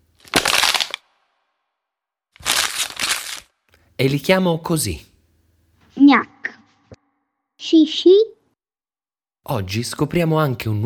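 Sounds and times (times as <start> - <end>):
empty plastic bottle and bag being crushed: 0.0 - 1.3, 2.4 - 3.8
speech: 4.0 - 5.1, 9.6 - 10.8.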